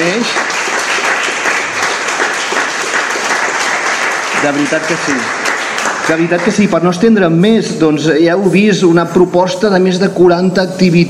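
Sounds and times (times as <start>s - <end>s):
audience applause: 0.0s - 6.7s
speech: 4.4s - 5.4s, 6.1s - 11.0s.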